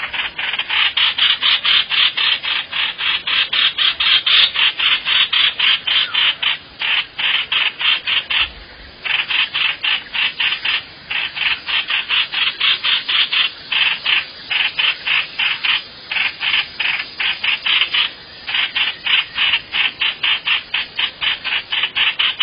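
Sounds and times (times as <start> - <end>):
bird rasping calls: 0.0 - 22.4.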